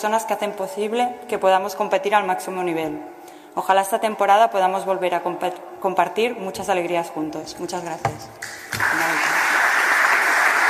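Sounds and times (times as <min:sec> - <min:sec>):
speech: 0:00.0 - 0:09.3
applause for the captain Mariona Ortiz: 0:08.4 - 0:10.6.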